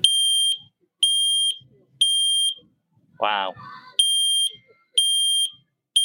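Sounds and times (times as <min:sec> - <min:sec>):
smoke alarm test beeping: 0:00.0 - 0:02.6, 0:04.0 - 0:06.0
speech: 0:03.2 - 0:03.9.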